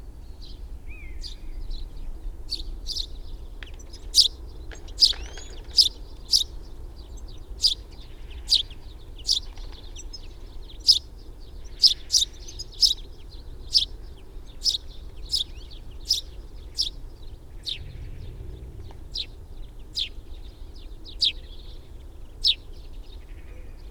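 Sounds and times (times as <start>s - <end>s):
sparrow chirping: 0.2s - 23.8s
low rumble: 17.4s - 21.8s.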